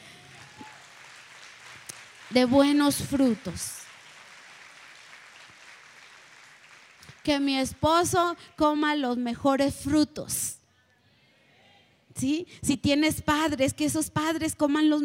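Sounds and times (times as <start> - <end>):
audience applause: 0.0 - 7.3
speech: 2.3 - 3.8, 7.2 - 10.6, 12.2 - 15.0.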